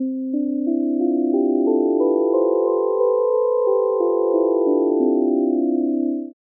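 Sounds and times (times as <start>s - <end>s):
plain melody: 0.0s - 6.4s.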